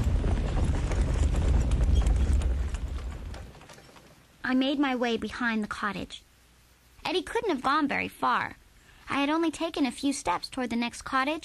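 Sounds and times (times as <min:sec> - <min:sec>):
ox hooves clopping: 0:00.0 - 0:04.2
ox cart rumbling on a road: 0:00.0 - 0:04.3
speech: 0:04.5 - 0:06.3, 0:07.0 - 0:11.4.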